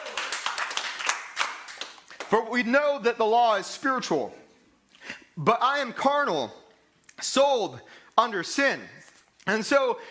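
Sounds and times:
audience hand clapping: 0.0s - 2.4s
speech: 2.3s - 4.4s, 5.4s - 6.6s, 7.2s - 10.0s.

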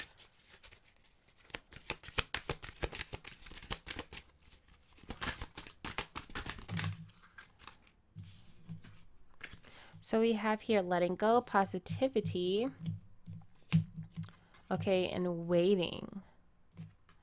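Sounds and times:
oracle cards being shuffled: 0.0s - 9.7s, 12.8s - 14.8s
speech: 10.1s - 13.0s, 14.7s - 16.1s.

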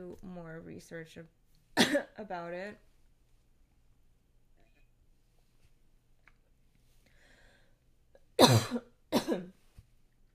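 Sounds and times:
speech: 0.2s - 2.9s, 8.5s - 9.6s
harsh coughing from choking on a hair: 1.8s - 2.2s, 8.4s - 9.6s.

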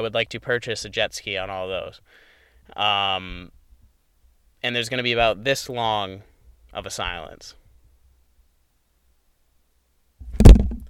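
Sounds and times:
speech: 0.0s - 3.6s, 4.6s - 7.6s
hard slap: 10.3s - 10.8s.

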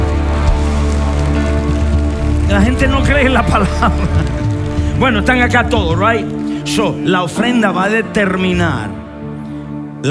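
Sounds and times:
audience applauding: 0.0s - 7.6s
speech: 2.6s - 4.4s, 5.0s - 9.0s
laughter: 3.3s - 4.6s.

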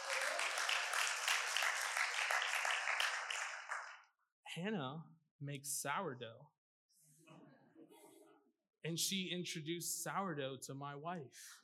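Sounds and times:
crowd applause: 0.0s - 4.0s
speech: 4.6s - 6.6s, 8.9s - 11.6s.

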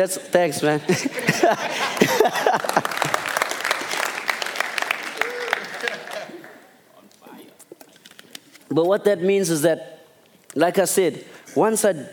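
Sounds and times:
speech: 0.0s - 3.1s, 8.7s - 9.9s, 10.6s - 12.1s
laughter: 0.6s - 3.4s, 5.1s - 6.7s
audience applause: 1.7s - 6.8s.

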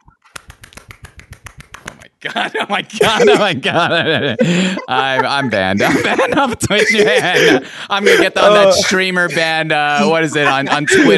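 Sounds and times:
clapping with one hand: 0.3s - 2.0s
laughter: 2.2s - 11.1s
speech: 2.2s - 11.1s.

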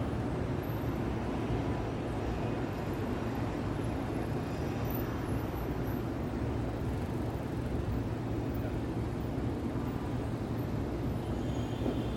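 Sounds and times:
steady wash of city traffic: 0.0s - 12.1s.

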